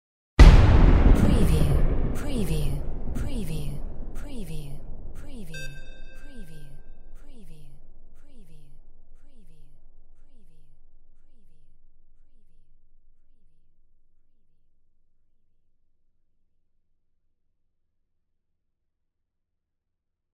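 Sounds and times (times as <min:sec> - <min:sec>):
war cannon fire: 0:00.4 - 0:04.2.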